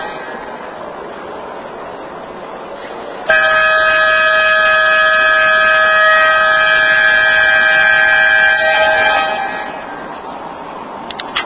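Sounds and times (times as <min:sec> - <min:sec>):
all clear horn pattern: 0:03.3 - 0:10.1.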